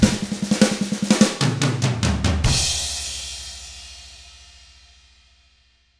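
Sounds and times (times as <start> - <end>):
shuffle drum beat: 0.0 - 3.4.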